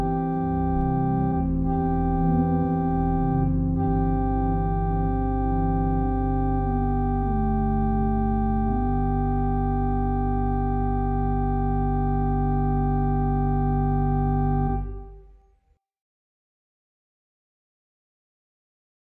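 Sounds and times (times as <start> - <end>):
classical organ music: 0.0 - 15.3.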